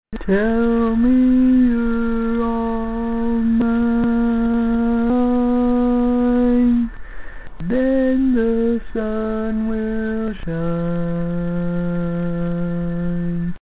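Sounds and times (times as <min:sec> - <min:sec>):
barbershop baritone singing: 0:00.1 - 0:06.9, 0:07.6 - 0:13.6.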